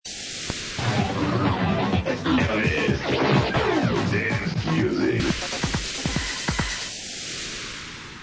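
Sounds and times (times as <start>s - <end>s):
dance music: 0.8s - 7.0s.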